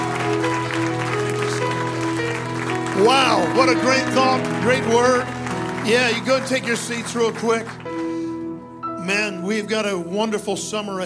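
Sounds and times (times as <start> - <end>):
audience cheering: 0.0 - 7.8
speech: 3.0 - 7.8, 9.0 - 11.0.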